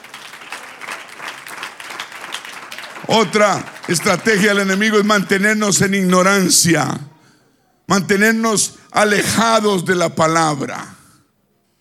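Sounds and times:
audience applause: 0.0s - 5.1s
speech: 3.1s - 7.2s, 7.9s - 10.9s.

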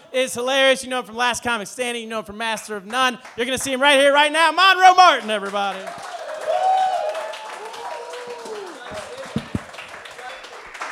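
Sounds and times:
speech: 0.1s - 6.2s
comedy club audience applause: 5.4s - 10.9s
comedy club audience shouting and whooping: 5.9s - 9.8s.

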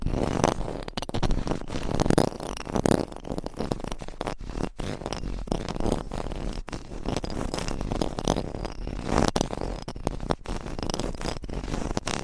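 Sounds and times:
rough scratching rubs across a microphone: 0.0s - 12.2s.

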